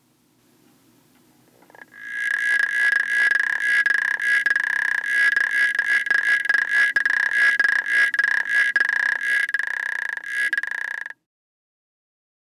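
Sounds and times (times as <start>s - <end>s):
African clawed frog Xenopus laevis calling with metallic clicking trills: 1.6s - 11.2s.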